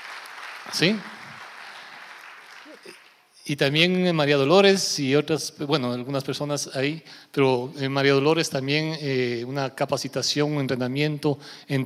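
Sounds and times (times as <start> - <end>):
audience applause: 0.0 - 3.2
speech: 0.6 - 1.1, 2.9 - 11.8.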